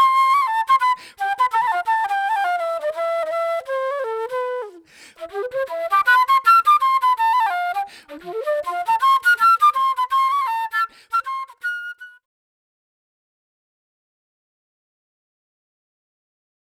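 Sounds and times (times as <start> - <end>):
flute: 0.0 - 12.3.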